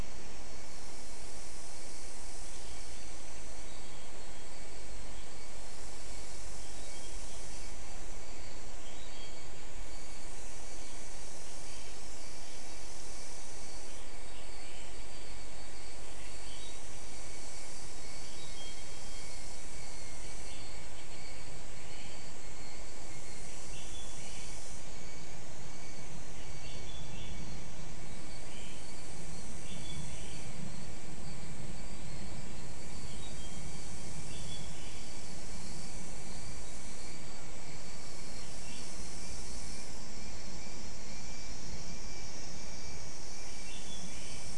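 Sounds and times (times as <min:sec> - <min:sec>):
insects: 0:00.0 - 0:44.5.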